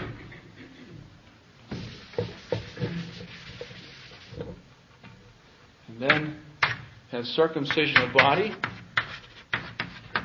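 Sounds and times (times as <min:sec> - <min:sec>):
eraser wiping writing off a board: 0:01.7 - 0:04.5, 0:08.6 - 0:10.2
speech: 0:07.2 - 0:08.7.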